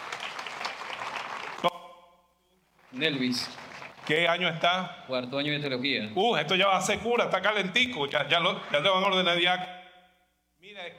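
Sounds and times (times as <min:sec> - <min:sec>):
audience applause for a seminarian: 0:00.0 - 0:01.7, 0:02.9 - 0:04.5
speech: 0:03.0 - 0:09.8.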